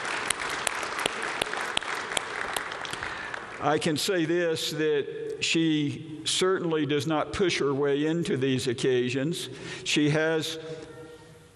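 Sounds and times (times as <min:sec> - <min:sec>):
audience applause: 0:00.0 - 0:03.6
speech: 0:03.6 - 0:10.9.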